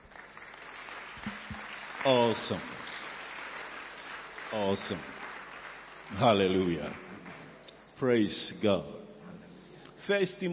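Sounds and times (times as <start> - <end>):
audience applause: 0.0 - 7.6
speech: 2.0 - 2.7, 4.5 - 5.2, 6.1 - 7.0, 8.0 - 9.0, 10.1 - 10.5.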